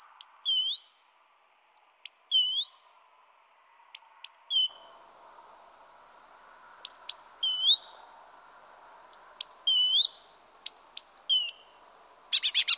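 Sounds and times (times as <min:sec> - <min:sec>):
great tit Parus major calling: 0:00.0 - 0:01.0, 0:01.8 - 0:02.8, 0:04.0 - 0:05.0, 0:06.8 - 0:08.0, 0:09.1 - 0:12.7.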